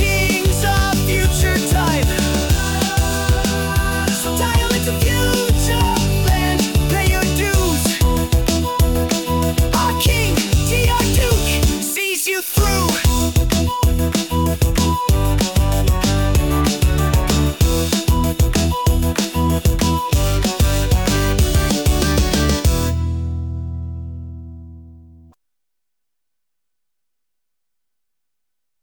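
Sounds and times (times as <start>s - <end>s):
breakbeat: 0.0s - 12.0s, 12.6s - 23.0s.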